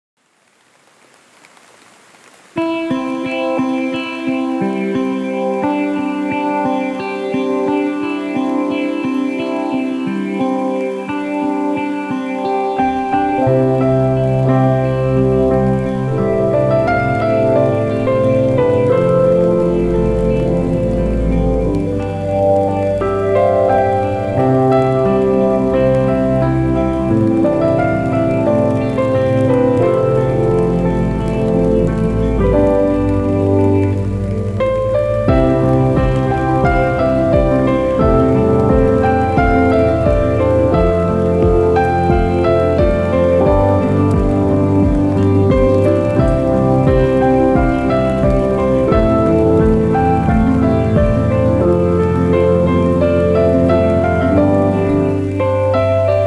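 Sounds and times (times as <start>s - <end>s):
rain: 0.2s - 56.2s
lofi music: 2.6s - 56.2s.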